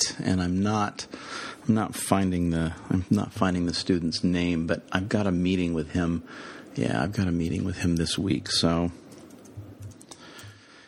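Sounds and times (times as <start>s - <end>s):
speech: 0.2s - 9.0s
computer keyboard typing: 9.0s - 10.6s.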